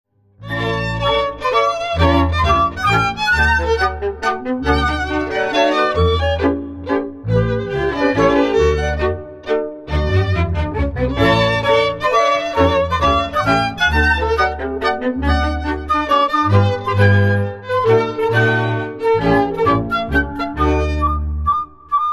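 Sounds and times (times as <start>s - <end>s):
march music: 0.4s - 22.0s.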